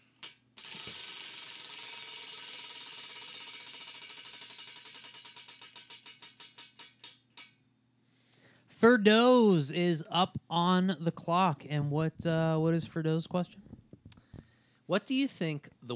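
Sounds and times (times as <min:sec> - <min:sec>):
spinning prize wheel clicking: 0:00.2 - 0:07.5
speech: 0:08.8 - 0:13.6, 0:14.9 - 0:15.9.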